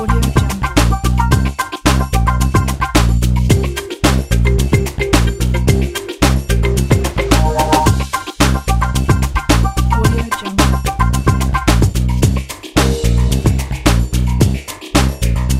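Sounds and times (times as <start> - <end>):
funk groove background music: 0.0 - 15.5.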